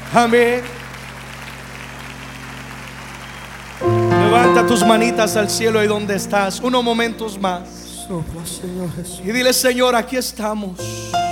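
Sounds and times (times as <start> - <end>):
audience applause: 0.0 - 6.5
speech: 0.1 - 0.8, 4.3 - 11.3.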